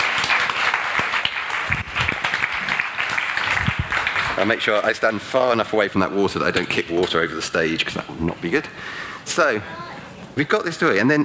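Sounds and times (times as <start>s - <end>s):
audience applause: 0.0s - 4.9s
speech: 4.4s - 11.2s.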